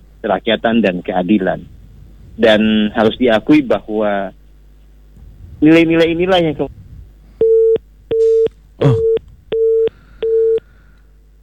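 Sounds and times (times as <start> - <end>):
speech: 0.2 - 1.8, 2.4 - 4.4, 5.6 - 6.8
busy tone beeps after a dropped phone call: 7.4 - 10.7.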